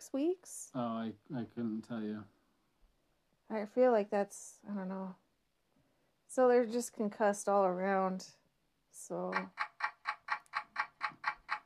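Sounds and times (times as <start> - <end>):
speech: 0.1 - 2.4, 3.5 - 5.2, 6.3 - 9.6
timer ticking: 9.3 - 11.6.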